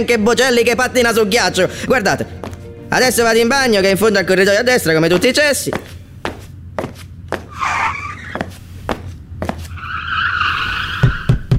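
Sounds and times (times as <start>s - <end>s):
speech: 0.0s - 5.9s
race car tires skidding: 7.4s - 8.7s, 9.5s - 11.5s
sharp knocking taps: 11.3s - 11.5s.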